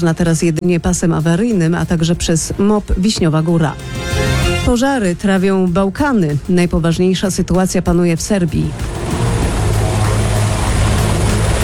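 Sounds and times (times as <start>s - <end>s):
speech: 0.0s - 9.0s
firefighting helicopter flying overhead: 8.7s - 11.6s.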